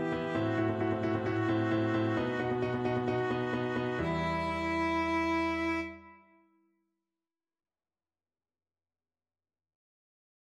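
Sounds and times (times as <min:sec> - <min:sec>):
first violin part: 0:00.0 - 0:06.4.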